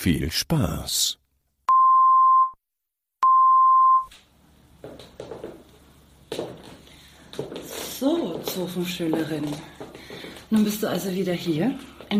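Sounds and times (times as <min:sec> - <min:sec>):
speech: 0:00.0 - 0:01.2, 0:08.0 - 0:12.1
short signal beeps for a headphone channel check: 0:01.7 - 0:02.6, 0:03.2 - 0:04.1.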